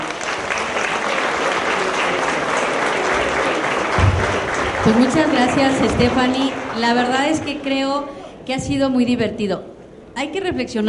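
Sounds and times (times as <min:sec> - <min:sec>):
audience applause: 0:00.0 - 0:07.9
speech: 0:04.8 - 0:10.8.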